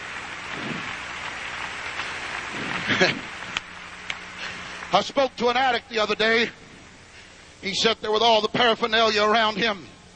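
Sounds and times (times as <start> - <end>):
crowd clapping: 0.0 - 5.6
speech: 2.9 - 3.4, 4.9 - 6.6, 7.6 - 10.0.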